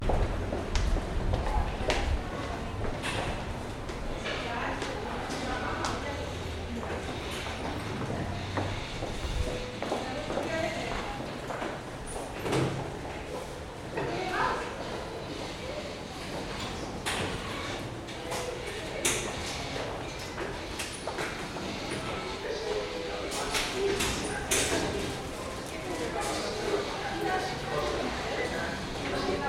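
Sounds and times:
metro subway train: 0.0 - 29.4.

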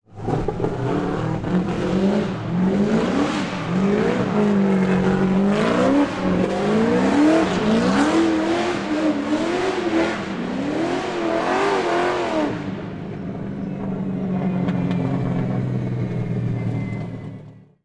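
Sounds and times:
tuned BMW speeding up: 0.0 - 17.7.

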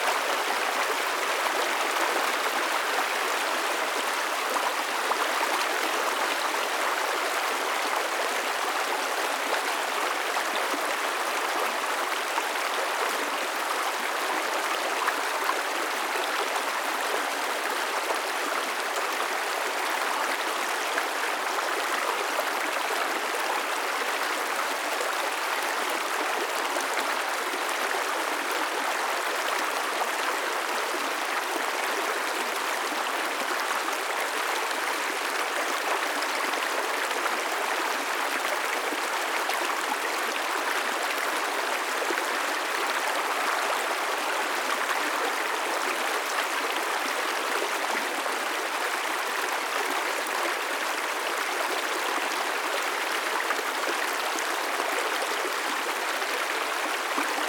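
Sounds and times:
small fast river: 0.0 - 57.4.

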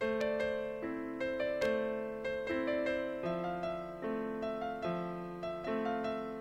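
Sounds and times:
piano: 0.0 - 6.4.

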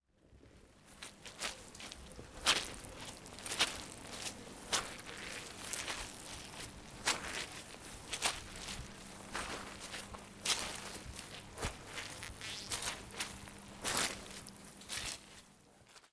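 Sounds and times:
feet squelching: 1.0 - 15.4.

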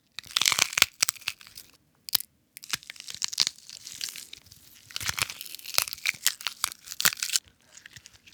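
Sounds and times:
bones breaking: 0.2 - 4.2, 4.9 - 7.4.

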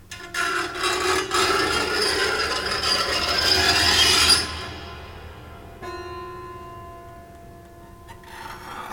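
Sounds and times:
scrapes: 0.1 - 5.6, 8.1 - 8.9.

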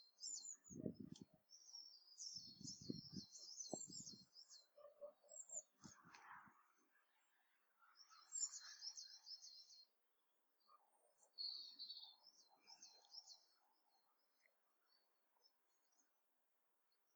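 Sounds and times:
birds singing on a January morning: 0.0 - 6.0, 7.8 - 9.9, 10.6 - 14.2.

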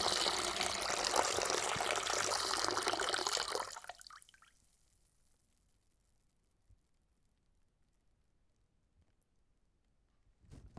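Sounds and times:
water: 0.0 - 4.5.

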